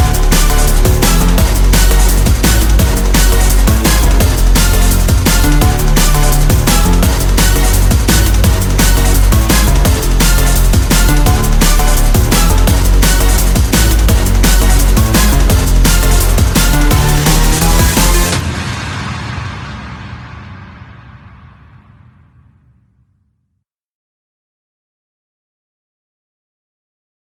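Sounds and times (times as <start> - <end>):
instrumental remix: 0.0 - 18.6.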